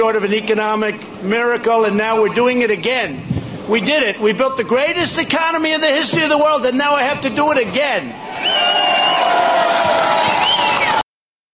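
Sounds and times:
speech: 0.0s - 9.4s
crowd cheering: 8.1s - 11.1s.

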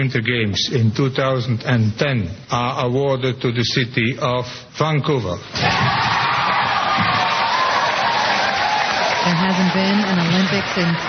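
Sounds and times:
speech: 0.0s - 6.2s, 9.2s - 11.0s
large crowd cheering: 5.6s - 11.0s.

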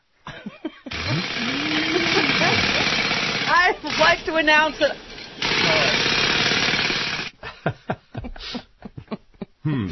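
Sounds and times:
laughter: 0.3s - 3.0s, 7.4s - 9.9s
central vacuum system running: 0.9s - 7.4s
speech: 1.1s - 1.6s, 3.7s - 5.1s, 9.7s - 9.9s.

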